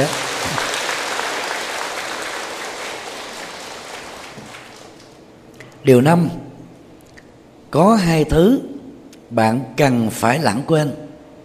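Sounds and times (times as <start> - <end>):
crowd clapping: 0.0 - 5.2
speech: 5.8 - 6.4, 7.7 - 8.7, 9.3 - 11.0.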